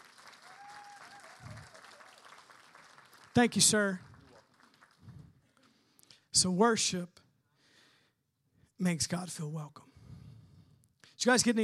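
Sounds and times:
church congregation clapping for a speaker during a service: 0.0s - 5.2s
speech: 3.4s - 4.1s, 6.4s - 7.2s, 8.8s - 9.8s, 11.2s - 11.6s.

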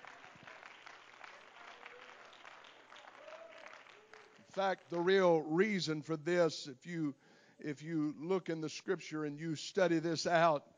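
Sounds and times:
audience clapping hands: 0.0s - 5.2s
speech: 4.6s - 10.7s.

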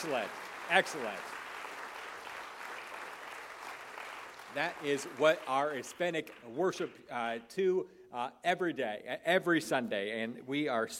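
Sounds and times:
speech: 0.0s - 1.4s, 4.5s - 10.9s
audience applauding for a worship band: 0.0s - 7.0s.

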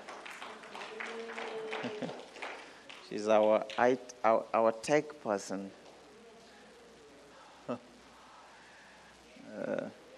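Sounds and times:
audience clapping: 0.0s - 4.0s
speech: 3.1s - 5.8s, 7.7s - 7.9s.

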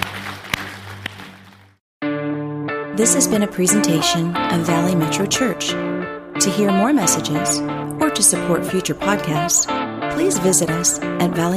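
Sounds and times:
audience clapping hands: 0.0s - 1.8s
speech: 3.0s - 11.5s.

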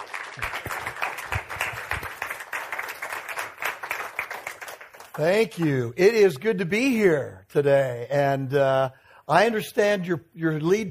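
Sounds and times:
church congregation clapping to welcome a preacher at a morning service: 0.0s - 6.4s
speech: 5.2s - 10.8s.

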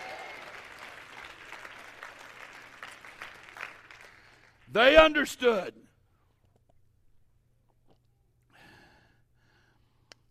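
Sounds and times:
audience clapping: 0.0s - 5.2s
speech: 4.7s - 5.8s.

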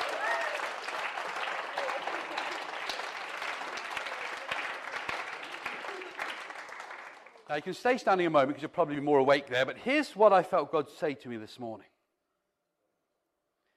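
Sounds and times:
audience applause: 0.0s - 8.0s
speech: 7.5s - 11.9s.

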